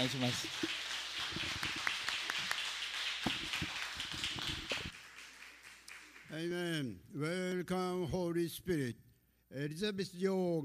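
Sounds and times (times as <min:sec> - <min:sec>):
speech: 0:00.0 - 0:01.4, 0:06.3 - 0:10.6
audience applause: 0:00.0 - 0:06.3.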